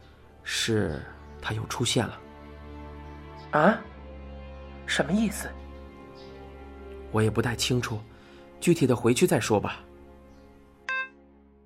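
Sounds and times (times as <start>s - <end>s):
speech: 0.7s - 2.2s, 3.5s - 3.9s, 4.9s - 5.6s, 7.1s - 9.9s
phone call hang-up beep: 10.9s - 11.2s.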